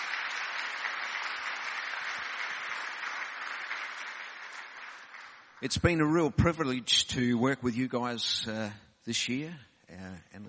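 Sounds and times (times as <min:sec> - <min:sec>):
audience applause: 0:00.0 - 0:05.8
speech: 0:05.6 - 0:10.4.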